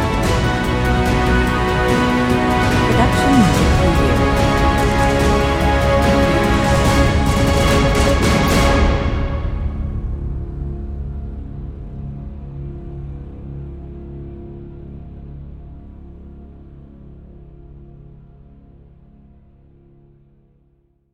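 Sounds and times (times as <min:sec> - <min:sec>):
epic full orchestra movie score: 0:00.0 - 0:10.8.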